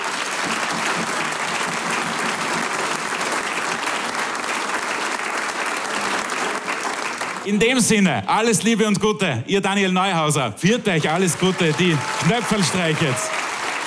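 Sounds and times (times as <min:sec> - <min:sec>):
audience applause: 0:00.0 - 0:07.6, 0:10.7 - 0:13.8
speech: 0:07.4 - 0:13.4.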